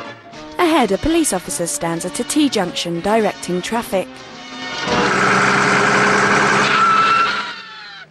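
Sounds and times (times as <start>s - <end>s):
speech: 0.8s - 4.4s
bus engine roaring: 4.8s - 7.5s.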